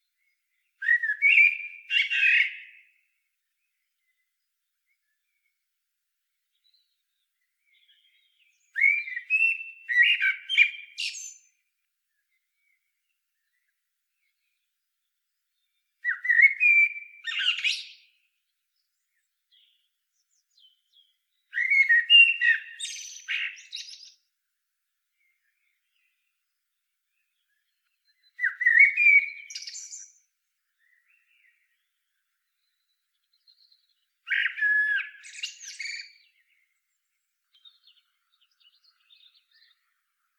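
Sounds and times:
Eurasian blackbird singing: 0.1s - 3.1s, 6.6s - 11.6s, 15.6s - 24.3s, 27.1s - 40.3s.

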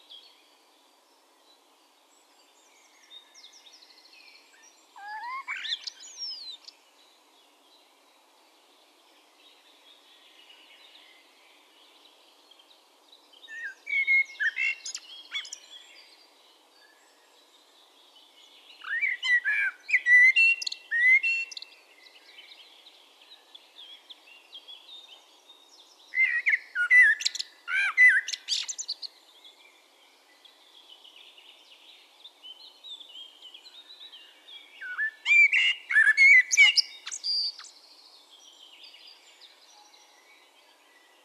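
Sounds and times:
Common blackbird singing: 2.7s - 6.7s, 13.4s - 16.2s, 18.4s - 25.2s, 26.0s - 29.2s, 32.6s - 41.2s.

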